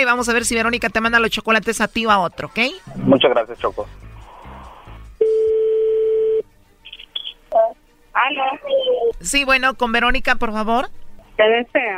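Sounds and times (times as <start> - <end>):
speech: 0.0 - 4.0, 7.6 - 11.9
telephone tone while placing a call: 5.2 - 6.4.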